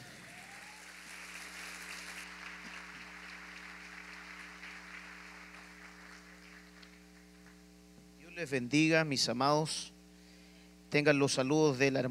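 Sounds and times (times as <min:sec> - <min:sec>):
audience applause: 0:00.0 - 0:07.6
low electrical hum: 0:00.0 - 0:12.0
speech: 0:08.4 - 0:09.9, 0:10.9 - 0:12.0.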